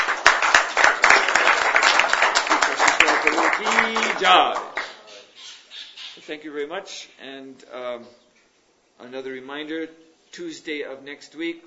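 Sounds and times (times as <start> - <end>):
audience applause: 0.0 - 5.0
speech: 4.2 - 4.8, 6.3 - 8.2, 9.0 - 11.6.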